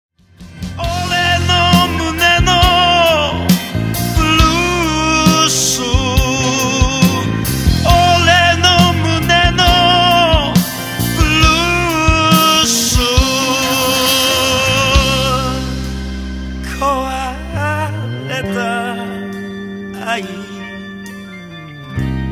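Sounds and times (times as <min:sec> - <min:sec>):
blues music: 0:00.3 - 0:22.3.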